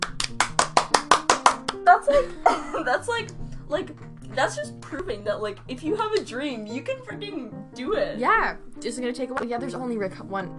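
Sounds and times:
hands clapping in applause: 0.0 - 2.1, 3.2 - 4.5, 6.0 - 6.4
speech: 1.8 - 10.5.

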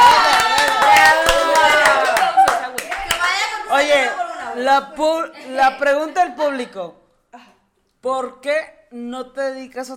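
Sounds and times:
audience clapping: 0.0 - 3.7
speech: 4.6 - 9.9.

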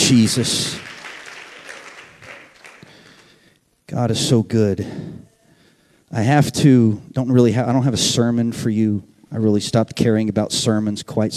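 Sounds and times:
audience clapping hands: 0.0 - 3.6
speech: 0.1 - 0.9, 4.0 - 5.2, 6.1 - 11.3.

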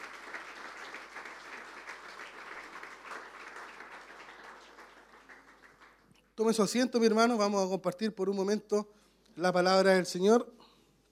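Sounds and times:
audience applause: 0.0 - 6.1
speech: 6.4 - 10.6.

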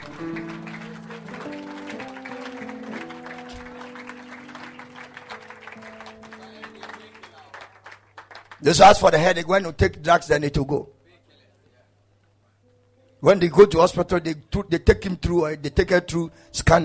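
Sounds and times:
audience clapping: 0.0 - 9.2
speech: 8.6 - 11.0, 13.2 - 16.8.

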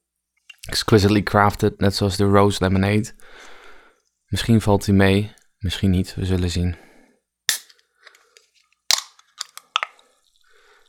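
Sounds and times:
speech: 0.7 - 3.5, 4.3 - 6.9
ginger beer can tab cracking open: 7.5 - 8.2, 8.9 - 10.0.

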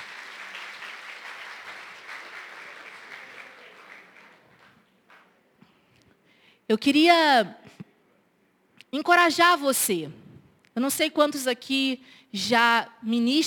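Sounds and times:
crowd applause: 0.0 - 5.3
speech: 6.7 - 7.8, 8.9 - 10.2, 10.8 - 13.4.

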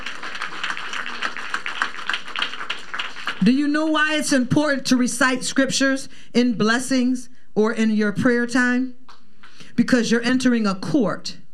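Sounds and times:
audience clapping: 0.0 - 3.6
speech: 3.4 - 9.0, 9.8 - 11.4.

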